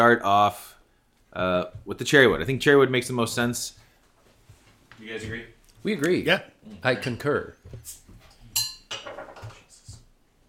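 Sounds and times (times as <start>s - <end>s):
speech: 0.0s - 0.7s, 1.3s - 3.8s, 5.0s - 8.0s
glass clinking: 8.5s - 9.5s.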